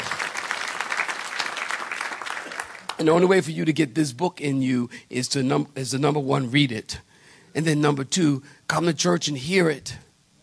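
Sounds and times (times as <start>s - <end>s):
audience clapping hands: 0.0s - 3.1s
speech: 3.0s - 10.1s.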